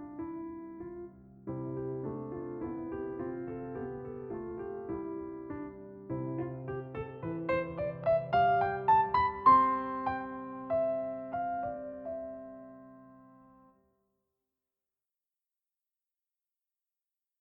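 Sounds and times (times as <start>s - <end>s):
gavotte in C on piano: 0.0s - 13.7s.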